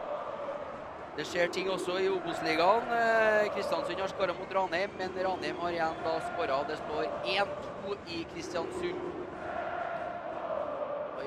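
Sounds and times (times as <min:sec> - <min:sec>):
football stadium crowd chanting: 0:00.0 - 0:04.6, 0:05.4 - 0:07.8, 0:08.6 - 0:11.2
football stadium crowd roar: 0:00.0 - 0:11.2
speech: 0:01.2 - 0:09.4.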